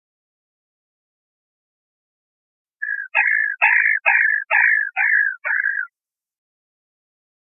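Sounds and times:
black rail calling: 2.8s - 5.9s.

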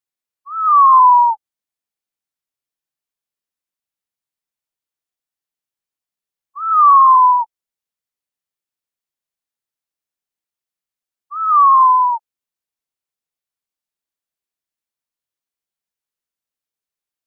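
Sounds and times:
Montezuma quail whistled note: 0.5s - 1.4s, 6.6s - 7.5s, 11.3s - 12.2s.

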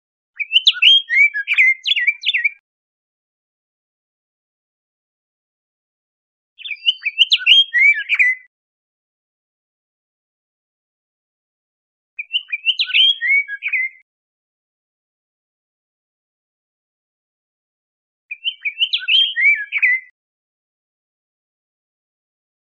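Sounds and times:
Scott's oriole whistled song in Costa Rica: 0.4s - 2.6s, 6.6s - 8.5s, 12.2s - 14.1s, 18.3s - 20.2s.

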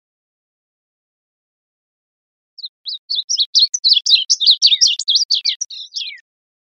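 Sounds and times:
bird song of quick high twitters: 2.6s - 6.3s.

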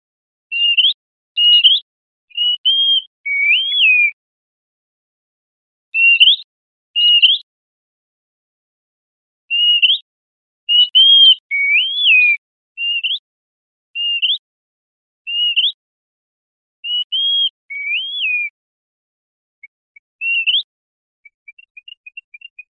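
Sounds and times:
bird whistles: 0.5s - 4.2s, 6.0s - 6.4s, 7.0s - 7.4s, 9.5s - 10.0s, 10.7s - 13.2s, 14.0s - 14.4s, 15.3s - 15.8s, 16.8s - 18.6s, 19.6s - 22.7s.

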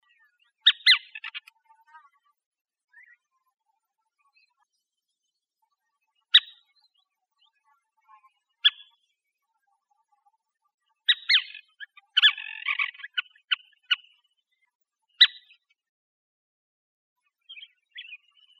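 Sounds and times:
streaked flycatcher squeaky calls: 0.7s - 1.4s, 11.1s - 11.6s, 12.2s - 13.2s.

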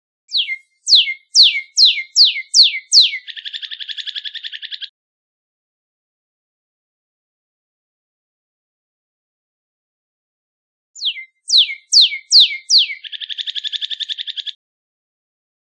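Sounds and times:
northern cardinal singing: 0.3s - 4.9s, 11.0s - 14.6s.

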